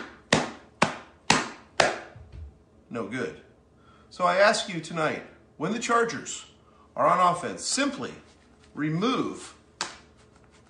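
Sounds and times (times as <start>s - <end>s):
clapping with gloves: 0.0s - 2.2s, 9.8s - 10.1s
speech: 2.9s - 3.5s, 4.1s - 9.6s.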